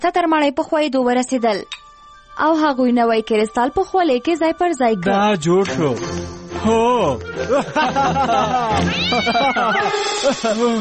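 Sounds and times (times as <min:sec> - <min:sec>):
speech: 0:00.0 - 0:01.8, 0:02.4 - 0:10.7
laughter: 0:07.1 - 0:10.7
cat meowing and yowling story sound effect: 0:08.7 - 0:10.1.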